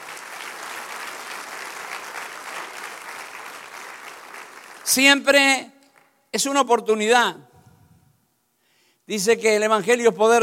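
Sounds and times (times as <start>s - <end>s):
audience applause: 0.0s - 5.0s
speech: 4.9s - 5.7s, 6.3s - 7.5s, 9.1s - 10.4s.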